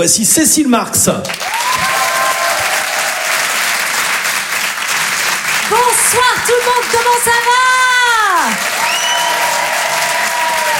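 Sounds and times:
speech: 0.0s - 2.0s, 5.7s - 8.7s
brief cheer: 1.3s - 4.3s, 5.6s - 10.7s
comedy show audience applauding a performer: 1.3s - 10.7s.

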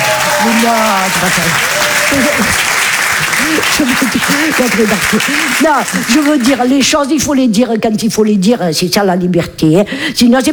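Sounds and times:
audience applause: 0.0s - 6.8s
speech: 0.5s - 10.5s.

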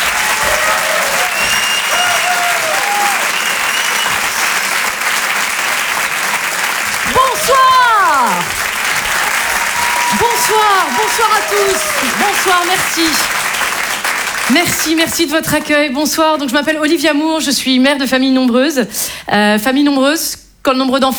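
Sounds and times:
audience whooping: 0.0s - 14.1s
theatre audience clapping for a French stand-up comedian: 0.0s - 15.8s
speech: 10.5s - 13.4s, 14.5s - 21.1s.

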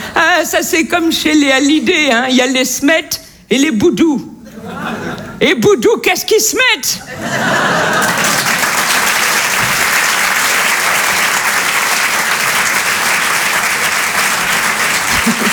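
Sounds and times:
speech: 0.4s - 8.0s
laughter: 4.4s - 5.4s, 7.0s - 8.9s, 14.0s - 15.5s
loud audience applause: 7.4s - 15.5s.

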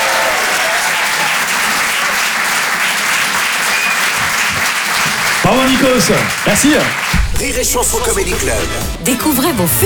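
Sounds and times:
audience cheers and whistles: 0.0s - 4.7s
audience applause: 0.0s - 7.4s
speech: 5.5s - 9.8s.

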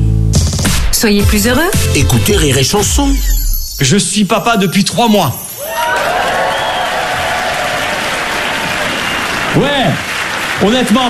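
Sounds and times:
speech: 1.0s - 6.2s, 9.5s - 11.0s
crowd audience applause: 5.6s - 11.0s.

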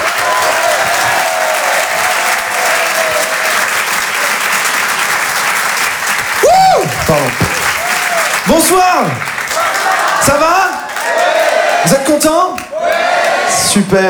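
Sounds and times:
audience loud whoop: 0.0s - 3.6s, 6.4s - 7.1s, 7.7s - 8.4s
audience clapping to welcome a comedian: 0.0s - 14.0s
speech: 7.1s - 7.5s, 8.5s - 9.3s, 10.2s - 12.6s, 13.5s - 14.0s.

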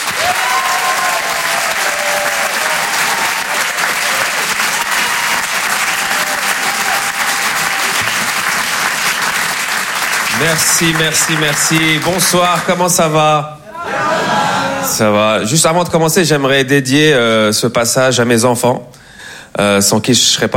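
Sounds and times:
cheers and whistles: 0.0s - 8.2s
comedy show audience clapping to welcome a comedian: 0.0s - 13.2s
speech: 10.4s - 13.6s, 14.8s - 19.0s, 19.6s - 20.5s.

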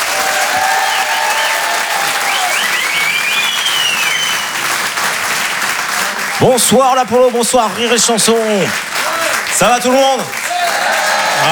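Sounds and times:
comedy club audience applauding a comedian: 0.0s - 11.4s
crowd cheering: 0.0s - 11.4s
whistles: 0.5s - 4.9s
speech: 6.4s - 8.9s, 9.6s - 10.8s.

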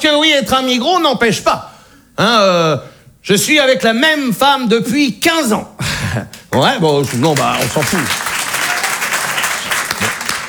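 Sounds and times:
speech: 0.2s - 8.2s
applause: 6.3s - 10.4s.

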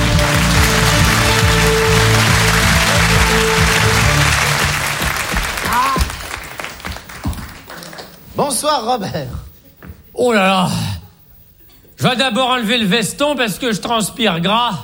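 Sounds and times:
large audience applause: 0.0s - 8.3s
speech: 8.5s - 9.5s, 10.2s - 10.9s, 12.0s - 14.8s.

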